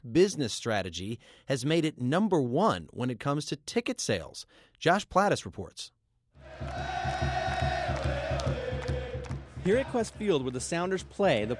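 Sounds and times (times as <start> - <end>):
speech: 0.1 - 7.4, 9.6 - 11.5
stadium crowd cheering at soccer match: 6.4 - 11.5.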